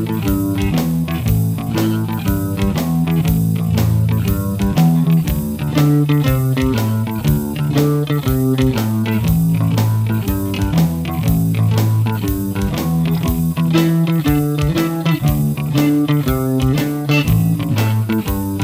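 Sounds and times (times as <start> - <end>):
backing blues music: 0.0 - 18.6.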